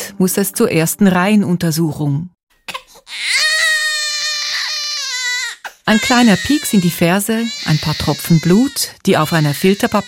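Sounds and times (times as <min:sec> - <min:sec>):
speech: 0:00.2 - 0:02.4, 0:05.9 - 0:10.0
newborn baby crying: 0:02.7 - 0:10.0.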